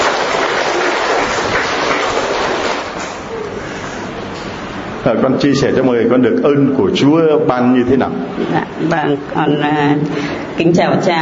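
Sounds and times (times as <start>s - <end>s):
audience applause: 0.0s - 3.4s
speech: 5.0s - 11.2s.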